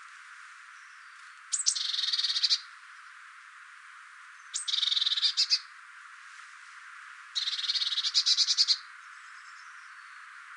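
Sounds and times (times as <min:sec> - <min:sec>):
Eurasian blue tit calling: 0:01.0 - 0:02.7, 0:04.5 - 0:05.7, 0:07.4 - 0:09.7.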